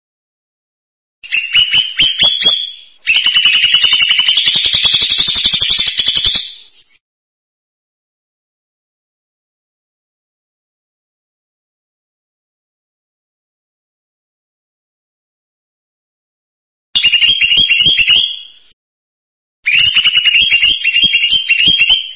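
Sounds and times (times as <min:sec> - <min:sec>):
bird song in buzzy trilled phrases: 0:01.2 - 0:07.0, 0:17.0 - 0:18.8, 0:19.7 - 0:22.1.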